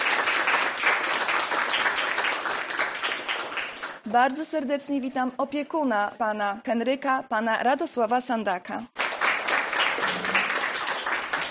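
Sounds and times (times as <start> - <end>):
crowd applauding for a 90th birthday: 0.0 - 4.0, 9.0 - 11.4
speech: 4.1 - 9.0.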